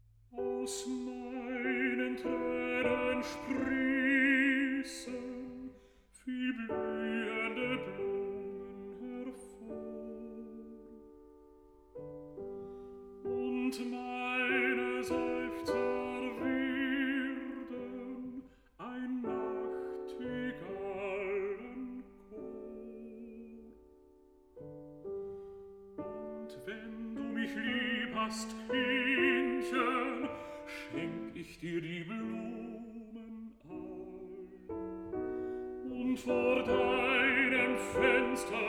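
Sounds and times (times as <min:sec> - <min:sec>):
piano: 0:00.0 - 0:38.6
person singing a song cycle: 0:00.3 - 0:11.3, 0:13.2 - 0:24.0, 0:26.0 - 0:38.6.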